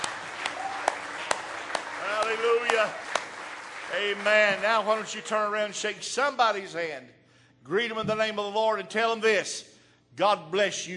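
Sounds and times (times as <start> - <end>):
audience hand clapping in praise: 0.0 - 5.9
speech: 2.8 - 3.1, 3.9 - 10.9.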